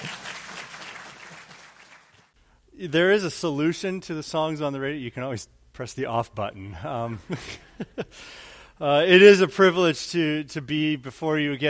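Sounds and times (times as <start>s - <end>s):
church congregation applauding its pastor: 0.0s - 2.4s
speech: 2.8s - 11.6s.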